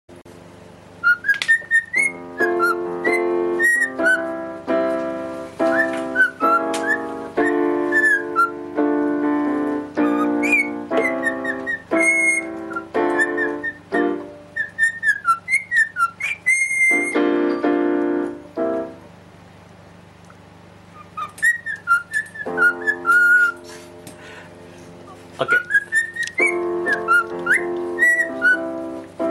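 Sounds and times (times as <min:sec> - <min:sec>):
piano chords: 0:00.1 - 0:29.2
cockatiel whistling: 0:01.0 - 0:04.3, 0:05.6 - 0:08.6, 0:10.0 - 0:17.2, 0:20.9 - 0:23.7, 0:25.4 - 0:28.8.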